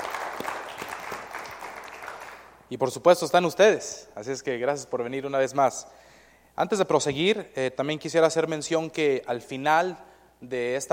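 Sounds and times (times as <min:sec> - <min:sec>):
audience applauding musicians at a meeting: 0:00.0 - 0:02.6
speech: 0:02.7 - 0:06.0, 0:06.6 - 0:10.9.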